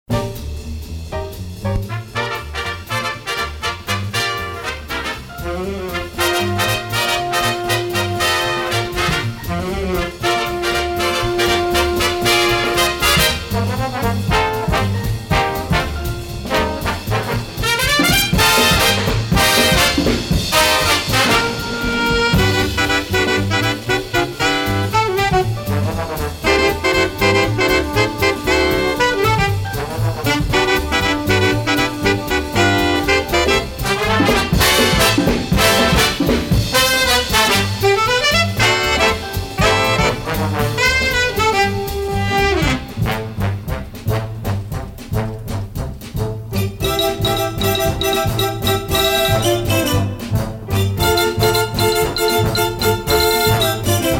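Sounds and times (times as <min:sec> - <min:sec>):
instrumental music: 0:00.1 - 0:54.1.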